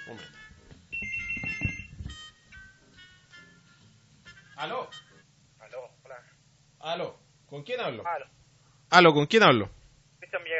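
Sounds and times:
telephone ringing: 0:00.0 - 0:05.2
speech: 0:00.1 - 0:00.5, 0:04.6 - 0:05.0, 0:06.9 - 0:08.3, 0:08.9 - 0:10.5.

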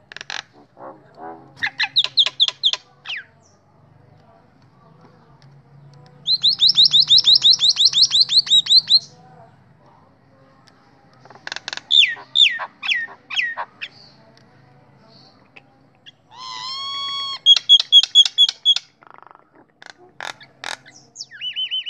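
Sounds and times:
Nias hill myna calling: 0:00.0 - 0:03.6, 0:06.2 - 0:09.2, 0:11.3 - 0:14.3, 0:15.4 - 0:21.8.

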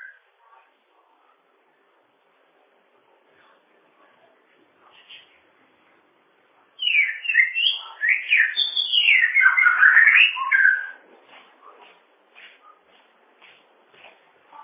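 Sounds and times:
bird whistling song: 0:06.8 - 0:11.0.

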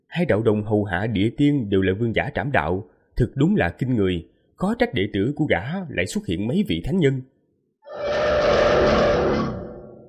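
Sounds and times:
speech: 0:00.2 - 0:07.3
roar: 0:07.8 - 0:10.0.

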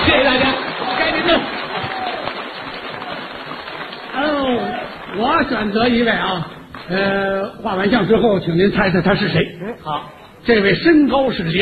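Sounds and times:
audience applause: 0:00.0 - 0:07.1
speech: 0:05.4 - 0:11.6.

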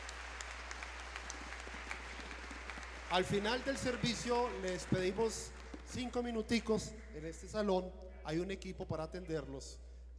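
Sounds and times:
audience clapping: 0:00.0 - 0:06.9
speech: 0:03.1 - 0:09.9.

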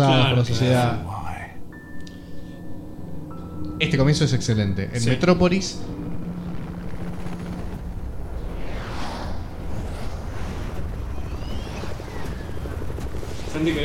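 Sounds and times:
speech: 0:00.0 - 0:01.2, 0:03.8 - 0:06.0, 0:13.6 - 0:13.8
faint rising whines: 0:01.5 - 0:13.8
helicopter descending in Metropolis rotor chopping: 0:05.0 - 0:13.8.

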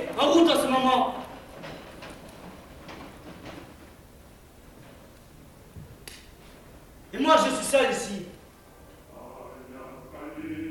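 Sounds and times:
train of deported Volga Germans rolling on rails: 0:00.0 - 0:07.1
speech: 0:00.2 - 0:01.3.

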